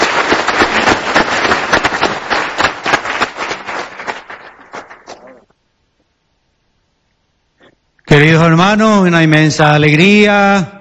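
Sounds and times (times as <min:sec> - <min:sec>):
audience applauding warmly: 0:00.0 - 0:05.5
speech: 0:08.2 - 0:10.7.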